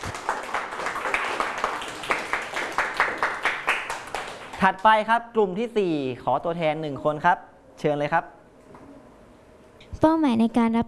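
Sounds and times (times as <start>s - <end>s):
applause for a classmate: 0.0s - 5.1s
speech: 4.6s - 8.4s, 10.0s - 10.8s.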